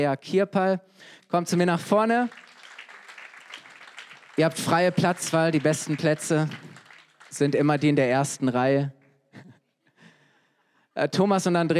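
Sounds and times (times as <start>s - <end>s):
speech: 0.0s - 2.5s, 4.4s - 6.7s, 7.3s - 9.5s, 11.0s - 11.7s
crowd applauding: 1.8s - 8.5s.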